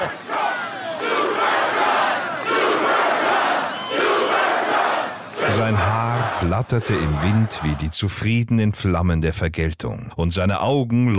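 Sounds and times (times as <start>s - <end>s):
large crowd cheering: 0.0s - 8.0s
speech: 5.6s - 11.1s.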